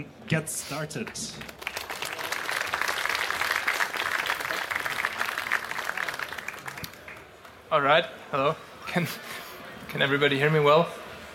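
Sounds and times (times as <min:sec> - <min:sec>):
speech: 0:00.0 - 0:01.6, 0:07.7 - 0:11.0
audience applause: 0:01.1 - 0:07.5.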